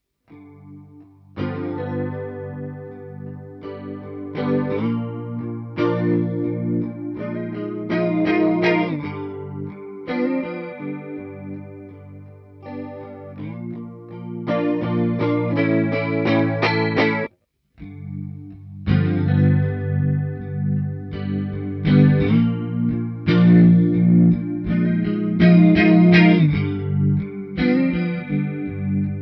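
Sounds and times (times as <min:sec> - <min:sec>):
guitar with chorus effect: 0:00.3 - 0:29.2.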